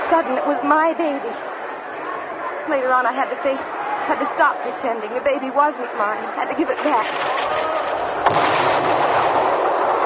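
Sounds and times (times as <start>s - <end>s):
speech: 0.1s - 1.5s, 2.7s - 7.7s
fireworks bursting: 6.7s - 10.0s
sharp louder firework bang: 6.9s - 10.0s.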